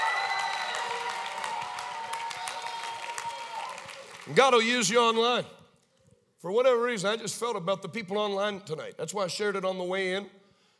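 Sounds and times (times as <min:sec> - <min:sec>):
audience clapping: 0:00.0 - 0:05.0
speech: 0:04.3 - 0:05.6, 0:06.4 - 0:10.4.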